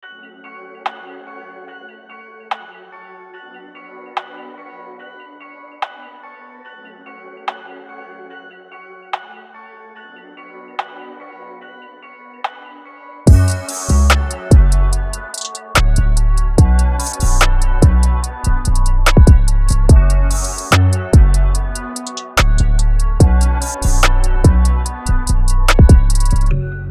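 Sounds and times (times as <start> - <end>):
music beat: 13.3 - 26.5.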